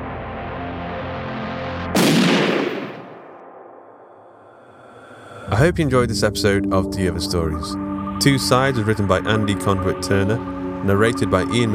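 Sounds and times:
gunshot sound effect in an audio drama: 0:02.0 - 0:03.6
steady low drone: 0:03.4 - 0:11.7
speech: 0:05.6 - 0:11.7.

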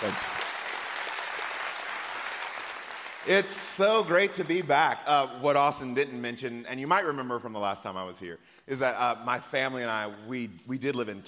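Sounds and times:
speech: 0:00.0 - 0:00.4, 0:03.2 - 0:11.2
church congregation clapping to welcome guest preacher Sean Palmer: 0:00.0 - 0:05.3.

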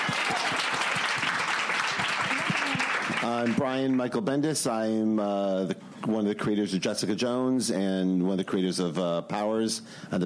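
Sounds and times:
crowd applauding: 0:00.0 - 0:04.1
speech: 0:03.3 - 0:10.2.

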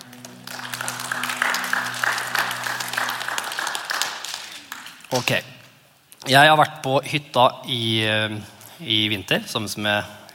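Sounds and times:
audience applause for worship singers: 0:00.0 - 0:05.4
speech: 0:05.1 - 0:05.5, 0:06.2 - 0:10.2.

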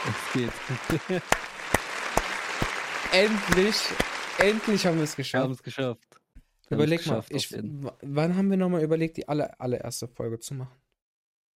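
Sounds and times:
laughter: 0:00.0 - 0:01.3, 0:01.9 - 0:05.3
sharp claps: 0:00.0 - 0:05.3
applause: 0:00.0 - 0:05.4
speech: 0:00.4 - 0:01.5, 0:03.1 - 0:06.1, 0:06.7 - 0:10.8.

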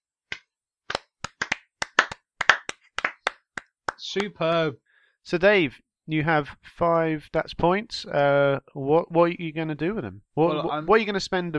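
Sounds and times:
round of applause: 0:00.9 - 0:04.3
speech: 0:04.0 - 0:11.5.

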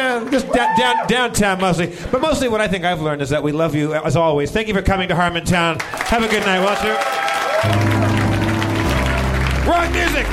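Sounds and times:
crowd applauding: 0:00.0 - 0:01.1, 0:05.8 - 0:10.3
speech: 0:00.2 - 0:08.1, 0:09.7 - 0:10.3
loud music: 0:07.6 - 0:10.3.

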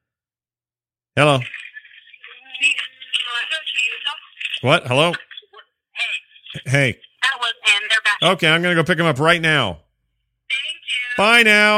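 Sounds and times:
speech: 0:01.2 - 0:01.6, 0:02.6 - 0:05.3, 0:06.6 - 0:09.8, 0:11.2 - 0:11.7
telephone ringing: 0:01.4 - 0:08.2.

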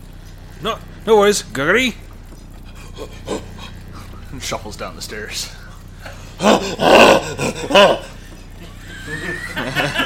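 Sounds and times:
faint rising whine: 0:00.0 - 0:10.0
speech: 0:00.6 - 0:02.0, 0:04.4 - 0:08.1, 0:09.2 - 0:10.0
gorilla-like retching and vomiting: 0:02.6 - 0:04.3, 0:06.0 - 0:08.3
laughter: 0:06.4 - 0:10.0.

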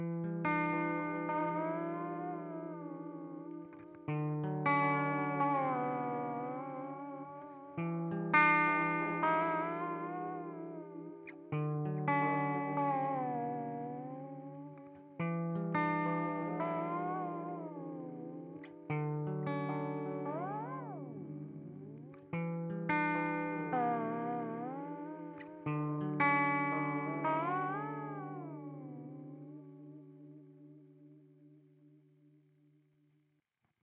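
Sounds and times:
electric instrument through a T120 videotape echo pedal by Demodesh Pedals: 0:00.0 - 0:30.4.

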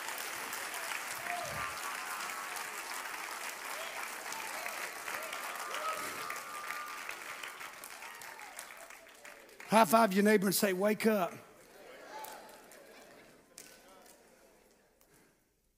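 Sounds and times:
audience clapping hands: 0:00.0 - 0:15.1
scattered voices and cheers: 0:01.1 - 0:08.5
speech: 0:09.7 - 0:11.4.

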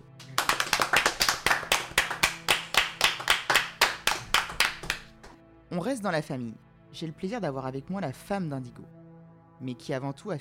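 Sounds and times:
hands clapping: 0:00.0 - 0:05.4
speech: 0:05.7 - 0:09.0, 0:09.6 - 0:10.4.

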